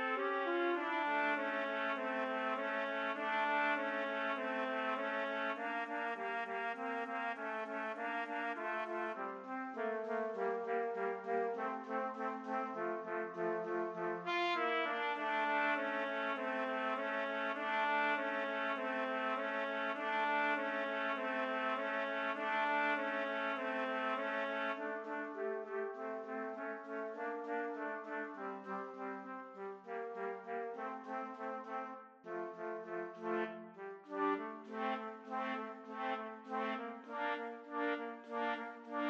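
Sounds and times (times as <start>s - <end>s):
trumpet trio playing: 0.0s - 39.0s.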